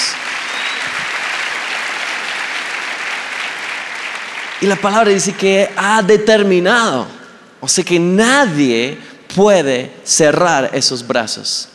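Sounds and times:
audience applause: 0.0s - 5.4s
speech: 4.6s - 11.7s.

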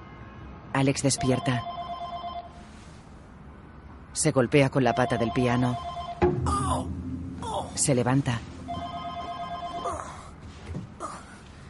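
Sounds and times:
speech: 0.8s - 1.8s, 4.2s - 6.0s, 6.7s - 8.5s
telephone ringing with electronic tone: 1.2s - 2.6s, 4.9s - 6.2s, 8.7s - 10.1s.

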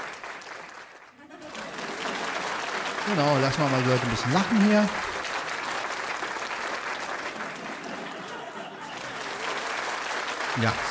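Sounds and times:
audience applause: 0.0s - 10.8s
laughter: 1.1s - 5.8s, 7.0s - 10.8s
speech: 3.1s - 5.1s, 10.6s - 10.8s.

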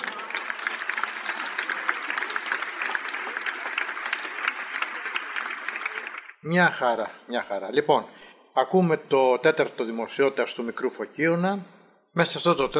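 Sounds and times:
audience applause: 0.0s - 6.4s
speech: 6.4s - 12.7s.

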